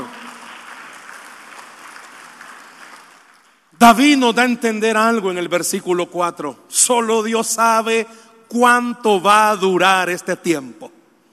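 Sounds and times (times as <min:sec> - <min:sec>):
audience applause: 0:00.0 - 0:03.5
speech: 0:03.8 - 0:11.0.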